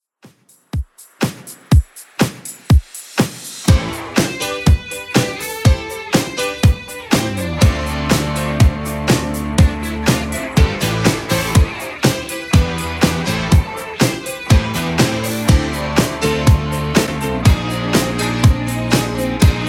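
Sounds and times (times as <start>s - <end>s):
80s drum loop at 122 bpm: 0.2s - 19.6s.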